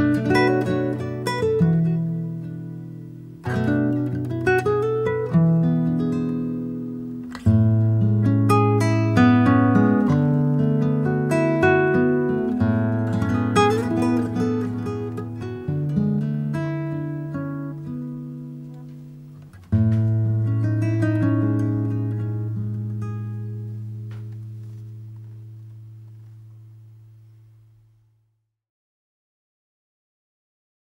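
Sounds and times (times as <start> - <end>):
Lowden S 32J acoustic guitar: 0.0 - 28.0.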